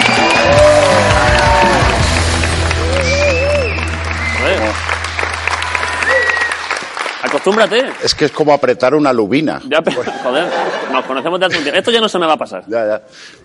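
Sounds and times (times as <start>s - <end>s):
scattered voices and whoops: 0.0s - 2.0s, 2.8s - 4.6s, 5.5s - 6.7s
audience applause: 0.0s - 8.4s
speech: 7.4s - 13.4s
laughter: 9.8s - 11.9s.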